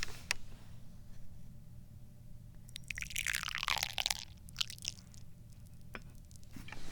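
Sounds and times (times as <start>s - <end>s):
tea poured from a carafe into a small cup: 2.7s - 5.3s.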